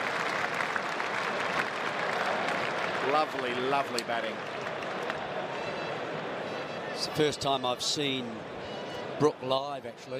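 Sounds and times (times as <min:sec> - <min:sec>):
cricket crowd applauding a milestone: 0:00.0 - 0:06.0
speech: 0:03.1 - 0:04.7, 0:07.0 - 0:10.1.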